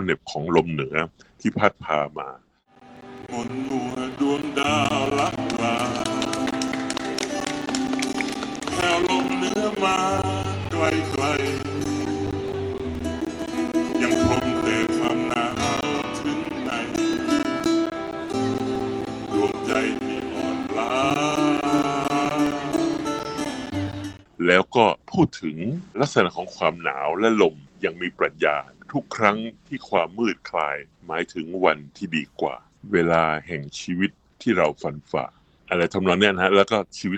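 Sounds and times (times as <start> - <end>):
speech: 0.0 - 2.5, 3.3 - 5.2, 9.8 - 11.8, 24.5 - 37.1
sung song with instrumental backing: 2.8 - 24.3.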